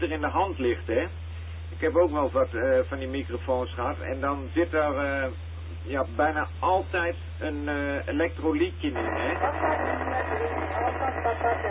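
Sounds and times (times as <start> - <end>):
speech: 0.0 - 10.5
amateur radio repeater transmission: 8.6 - 11.6.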